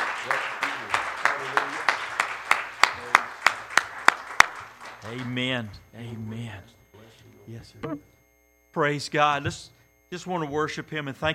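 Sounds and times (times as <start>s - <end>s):
audience clapping hands: 0.0s - 5.7s
speech: 5.1s - 6.8s, 7.5s - 8.1s, 8.7s - 11.3s.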